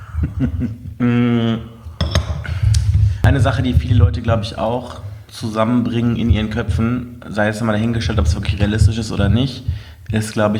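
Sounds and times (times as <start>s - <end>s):
speech: 0.4s - 1.7s, 3.4s - 10.5s
coffee cups clinking together in a toast: 1.9s - 2.9s.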